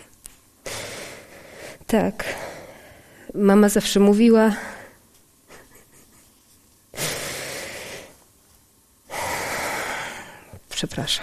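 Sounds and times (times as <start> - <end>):
speech: 1.9 - 2.5, 3.3 - 4.7, 10.8 - 11.2
woman crying loudly and sobbing: 5.5 - 6.4.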